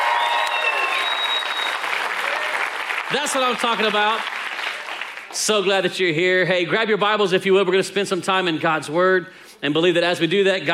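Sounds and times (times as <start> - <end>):
cheers and whistles: 0.0 - 2.8
audience applause: 0.0 - 5.4
speech: 3.1 - 4.3, 5.3 - 10.7.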